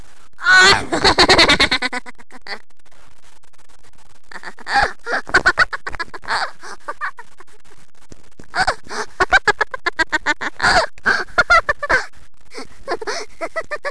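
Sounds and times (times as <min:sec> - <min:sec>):
person laughing: 0:00.4 - 0:02.6, 0:04.3 - 0:07.5, 0:08.6 - 0:13.8.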